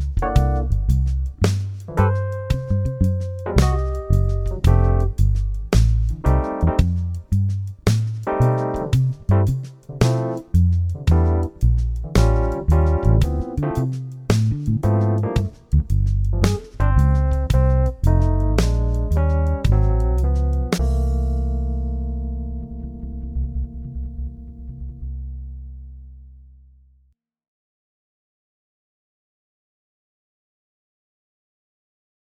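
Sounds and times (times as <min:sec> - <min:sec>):
blues shuffle in C: 0:00.0 - 0:25.2.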